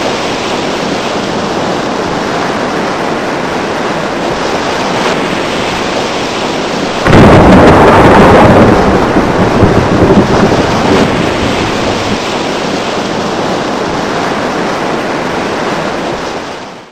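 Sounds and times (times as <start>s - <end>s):
heavy rain recorded on a mobile phone: 0.0s - 16.9s.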